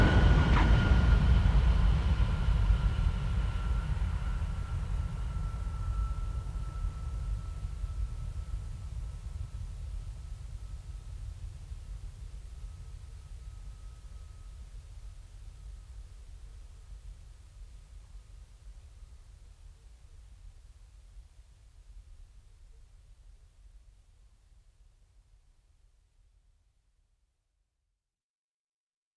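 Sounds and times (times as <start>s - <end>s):
MiG-15UTI jet landing: 0.0s - 8.8s.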